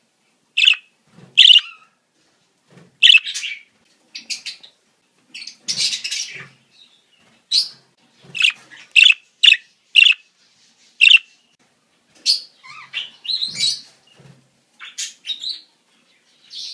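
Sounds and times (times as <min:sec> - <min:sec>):
budgerigar chatter: 0:00.6 - 0:00.8, 0:01.4 - 0:01.6, 0:08.4 - 0:10.2, 0:11.0 - 0:11.2.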